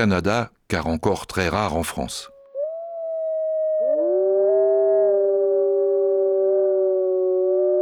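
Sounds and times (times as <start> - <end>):
speech: 0.0 - 2.3
wolves howling in a Canadian forest at nightfall: 2.3 - 7.7.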